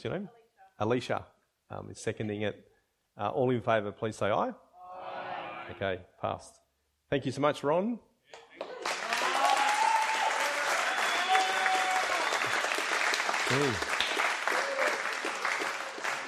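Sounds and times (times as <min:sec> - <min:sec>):
speech: 0:00.0 - 0:04.6, 0:05.7 - 0:08.4, 0:13.5 - 0:14.0
audience applause: 0:08.5 - 0:16.2.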